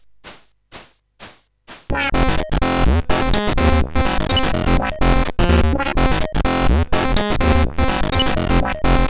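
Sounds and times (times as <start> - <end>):
electric SID CSG8580R5 chip sound: 1.9 - 9.0.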